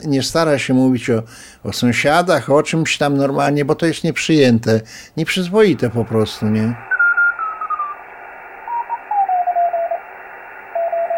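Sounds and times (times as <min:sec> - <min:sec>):
speech: 0:00.0 - 0:06.9
radio operator's call signal tones transmitted from Ireland: 0:05.7 - 0:11.1.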